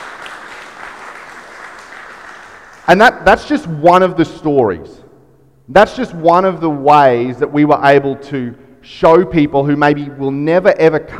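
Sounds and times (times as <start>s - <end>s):
audience clapping: 0.0s - 3.0s
speech: 2.9s - 5.0s, 5.7s - 11.1s.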